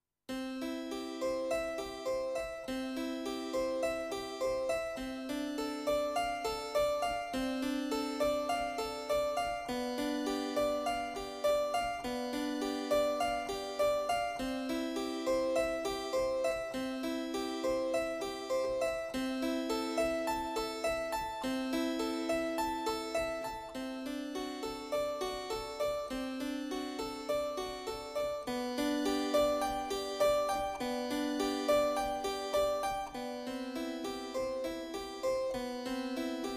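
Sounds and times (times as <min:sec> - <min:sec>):
harpsichord: 0:00.4 - 0:36.5.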